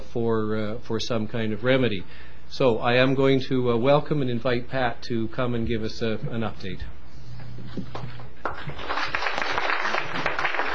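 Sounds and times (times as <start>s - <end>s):
speech: 0.1s - 7.0s, 7.7s - 9.0s
audience applause: 8.4s - 10.7s.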